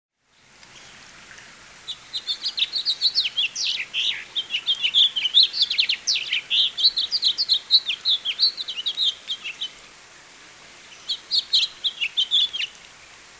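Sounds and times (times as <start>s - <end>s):
house finch Haemorhous mexicanus singing a fast jumbled warble: 1.9s - 9.8s, 10.8s - 12.8s.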